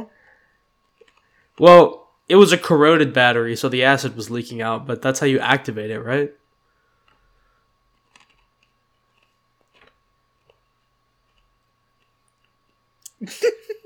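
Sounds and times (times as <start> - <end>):
person chewing ice: 0.8 - 1.6, 7.0 - 12.8
speech: 1.6 - 6.4, 13.2 - 13.7.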